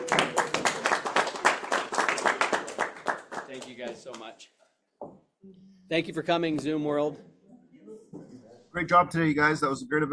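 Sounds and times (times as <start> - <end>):
audience applause: 0.0 - 4.3
speech: 3.8 - 4.6, 5.4 - 7.3, 8.7 - 10.1.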